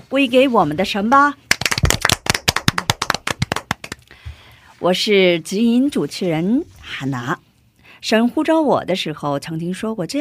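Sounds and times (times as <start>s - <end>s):
speech: 0.1s - 1.4s, 4.8s - 10.1s
audience clapping: 1.5s - 4.1s.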